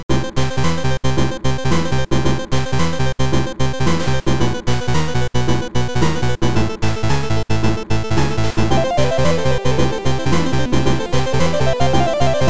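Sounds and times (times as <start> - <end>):
beat jam music: 0.1 - 12.4.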